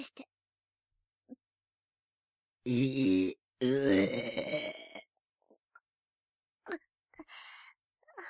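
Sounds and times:
loud burp: 2.7s - 5.0s.

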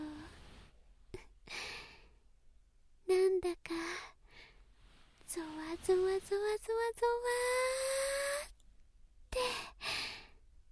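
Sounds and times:
low steady hiss: 0.0s - 10.7s
close breathing: 1.4s - 2.2s, 4.0s - 5.3s, 9.4s - 10.4s
speech: 3.4s - 4.1s, 5.3s - 8.0s.

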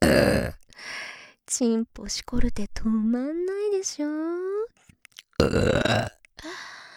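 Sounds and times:
woman burping loudly: 0.0s - 0.6s, 5.4s - 6.2s
speech: 1.5s - 4.7s, 5.4s - 6.7s.

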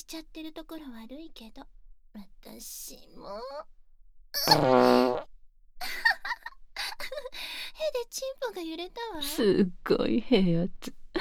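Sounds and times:
speech: 0.0s - 5.9s, 7.9s - 11.2s
fart: 4.4s - 5.3s.

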